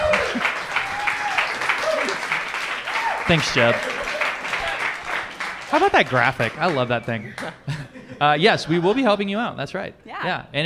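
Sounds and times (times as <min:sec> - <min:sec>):
audience applause: 0:00.0 - 0:07.8
speech: 0:03.3 - 0:03.9, 0:05.7 - 0:10.6
laughter: 0:03.3 - 0:04.9, 0:05.8 - 0:09.3.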